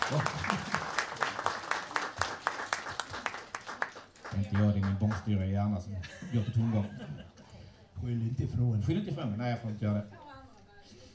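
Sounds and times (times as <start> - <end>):
laughter: 0.0 - 1.4, 6.0 - 7.6
audience applause: 0.0 - 5.3
speech: 0.1 - 0.6, 4.4 - 7.3, 8.0 - 10.2.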